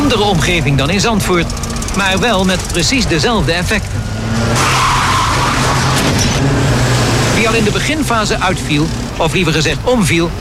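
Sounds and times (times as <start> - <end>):
cars racing in reverse: 0.0 - 10.3
tires skidding: 0.0 - 10.3
speech: 0.1 - 4.9, 7.4 - 10.3.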